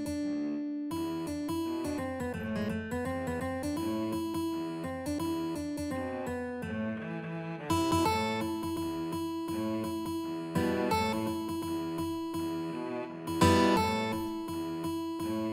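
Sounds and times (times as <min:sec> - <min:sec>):
guitar in a guitar-cello duet: 0:00.0 - 0:15.5
cello in a guitar-cello duet: 0:02.3 - 0:02.8, 0:05.9 - 0:15.5.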